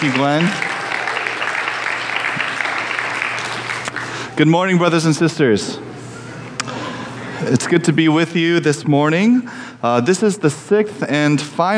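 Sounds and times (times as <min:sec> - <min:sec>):
speech: 0:00.0 - 0:00.7, 0:04.4 - 0:05.9, 0:07.4 - 0:11.7
audience round of applause: 0:00.0 - 0:04.3.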